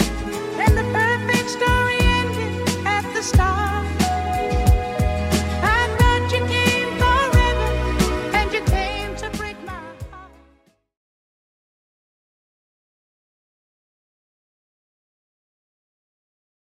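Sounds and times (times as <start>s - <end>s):
70s drum machine beat at 90 bpm: 0.0s - 10.2s.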